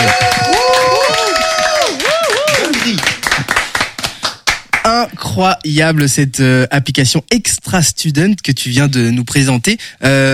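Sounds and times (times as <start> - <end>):
hand claps for a student on a French radio show: 0.0 - 4.9
speech: 5.4 - 10.3.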